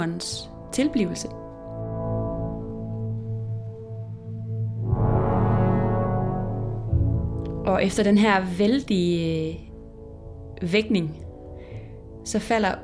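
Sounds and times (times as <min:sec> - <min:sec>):
speech: 0:00.0 - 0:01.4, 0:07.8 - 0:09.7, 0:10.6 - 0:11.2, 0:12.2 - 0:12.8
eight horns playing an orchestral march theme in unison: 0:01.6 - 0:07.3.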